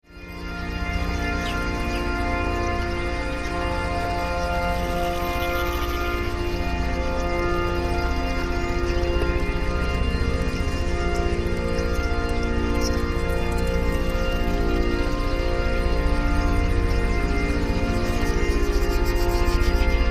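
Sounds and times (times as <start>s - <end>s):
helicopters: 0.4s - 20.0s.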